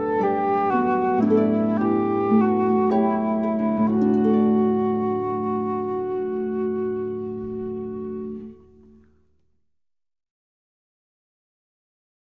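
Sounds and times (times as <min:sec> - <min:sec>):
harp: 0:00.0 - 0:09.3.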